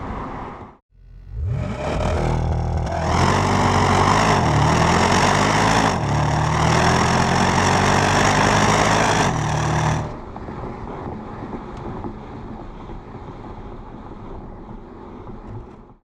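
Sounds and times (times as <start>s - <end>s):
Porsche Panamera Turbo engine: 0.9s - 10.4s.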